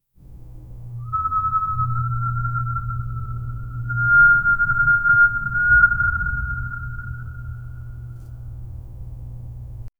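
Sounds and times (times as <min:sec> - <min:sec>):
ghostly sound: 0:01.0 - 0:08.2.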